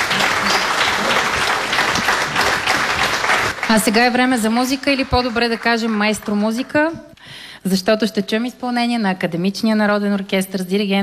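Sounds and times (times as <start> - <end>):
audience applause: 0.0 - 6.6
speech: 3.7 - 11.0.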